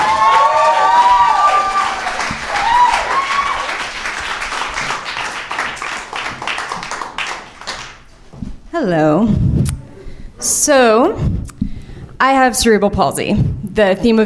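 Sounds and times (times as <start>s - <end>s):
crowd applause: 0.0s - 8.0s
speech: 8.8s - 9.4s, 10.6s - 11.3s, 12.2s - 14.2s.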